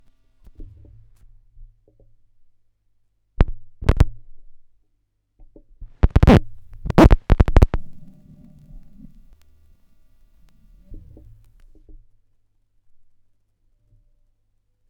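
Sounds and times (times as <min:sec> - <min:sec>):
vinyl record crackle: 0:06.0 - 0:11.7.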